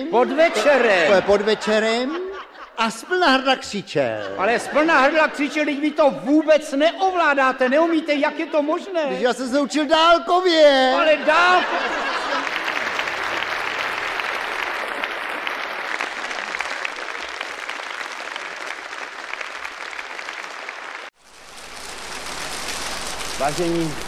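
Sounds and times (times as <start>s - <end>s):
speech: 0.0s - 2.2s, 2.8s - 12.2s, 23.5s - 24.0s
laughter: 0.0s - 6.4s, 10.8s - 17.6s
audience applause: 11.5s - 24.0s.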